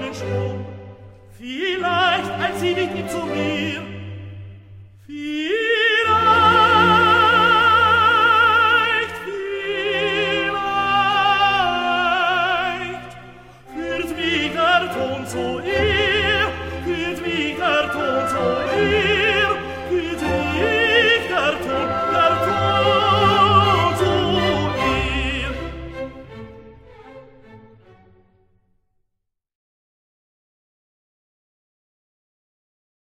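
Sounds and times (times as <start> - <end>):
aria singing: 0.0 - 26.4.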